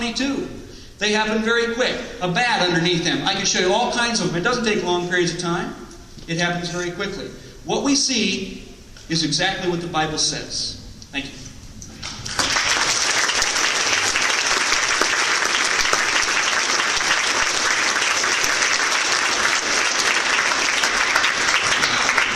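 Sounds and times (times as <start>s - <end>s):
speech: 0.0s - 11.4s
audience applause: 12.0s - 22.3s.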